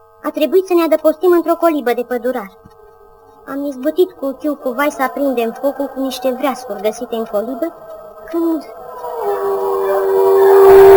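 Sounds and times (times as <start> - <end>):
speech: 0.2 - 2.7, 3.5 - 8.8
howl: 5.0 - 10.9.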